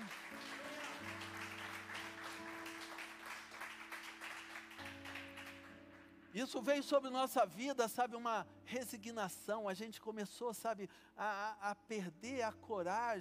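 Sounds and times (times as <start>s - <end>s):
audience applause: 0.0s - 6.0s
sustained keyboard chords: 0.0s - 9.5s
speech: 6.3s - 13.1s.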